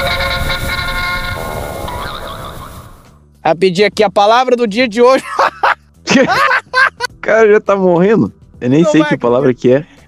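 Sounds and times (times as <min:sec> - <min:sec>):
old-fashioned jingle with horn-like tones opening a word-of-the-day segment: 0:00.0 - 0:01.7
speech: 0:03.5 - 0:05.6, 0:06.2 - 0:06.6, 0:07.3 - 0:09.9
laughter: 0:05.2 - 0:07.1.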